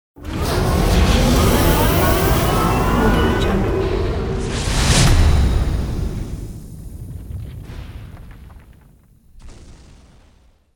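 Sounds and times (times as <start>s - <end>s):
big machine: 0.2s - 7.8s.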